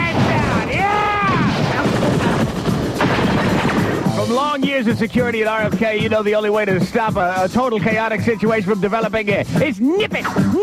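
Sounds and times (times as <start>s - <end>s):
gunshots fired into the air: 0.0s - 4.8s
speech: 4.8s - 10.6s.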